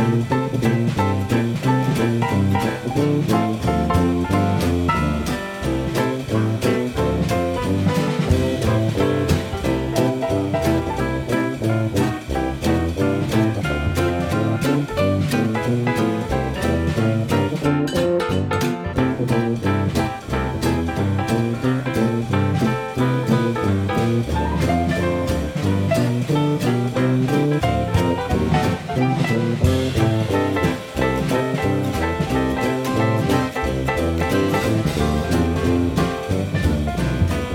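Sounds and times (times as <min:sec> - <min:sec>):
swing music: 0:00.0 - 0:37.5.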